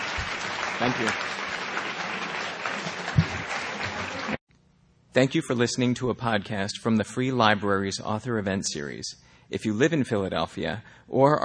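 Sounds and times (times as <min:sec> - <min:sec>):
audience applause: 0:00.0 - 0:04.4
speech: 0:00.8 - 0:01.3, 0:05.2 - 0:11.4.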